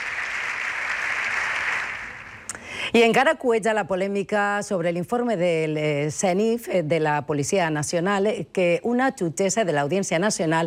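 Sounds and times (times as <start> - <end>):
ovation from members of the Spanish Congress: 0.0 - 2.5
speech: 2.9 - 10.6.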